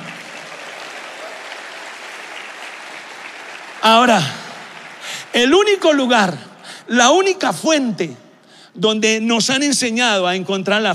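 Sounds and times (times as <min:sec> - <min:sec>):
audience applause: 0:00.0 - 0:06.1
speech: 0:03.8 - 0:04.4, 0:05.3 - 0:08.2, 0:08.8 - 0:10.9.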